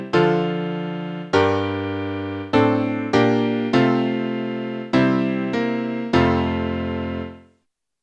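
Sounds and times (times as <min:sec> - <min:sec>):
piano piece: 0:00.0 - 0:07.5.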